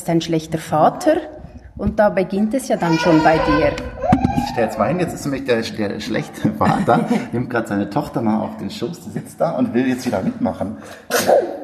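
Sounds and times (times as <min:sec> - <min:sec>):
speech: 0:00.0 - 0:11.6
laughter: 0:04.0 - 0:07.8, 0:09.6 - 0:10.7
child sneezing: 0:11.1 - 0:11.6.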